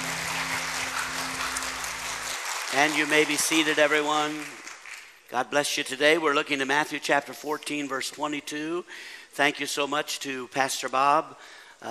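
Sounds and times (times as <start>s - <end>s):
church congregation clapping for the Lord: 0.0s - 5.3s
speech: 2.7s - 4.6s, 5.3s - 11.8s.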